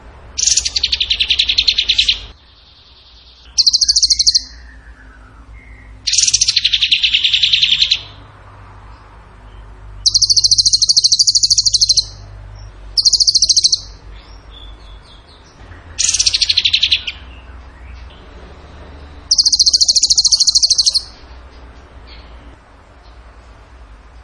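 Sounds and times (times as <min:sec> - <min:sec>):
bird trilling: 0:00.4 - 0:08.2, 0:10.0 - 0:12.2, 0:13.0 - 0:17.5, 0:19.2 - 0:21.2.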